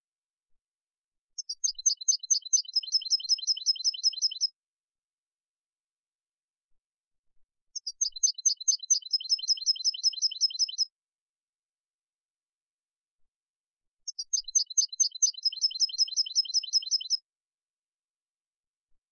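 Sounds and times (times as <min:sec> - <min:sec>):
European goldfinch twittering: 0:01.4 - 0:04.5, 0:07.8 - 0:10.9, 0:14.1 - 0:17.2.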